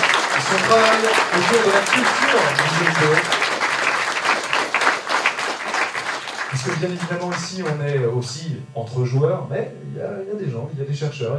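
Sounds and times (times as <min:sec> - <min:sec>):
audience applause: 0:00.0 - 0:08.0
speech: 0:00.5 - 0:03.5, 0:06.6 - 0:11.3.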